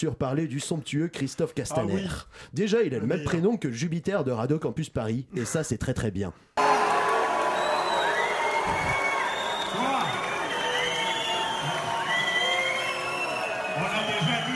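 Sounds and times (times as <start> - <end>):
speech: 0.0 - 6.6
crowd whistling at a political rally: 6.6 - 14.5.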